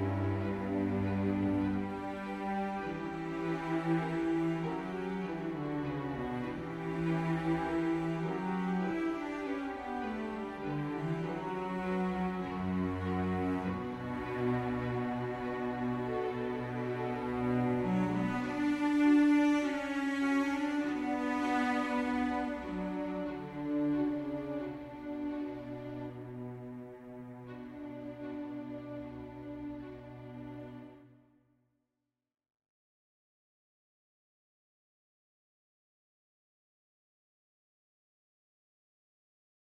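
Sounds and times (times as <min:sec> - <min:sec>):
string quartet playing a prelude: 0:00.0 - 0:31.1.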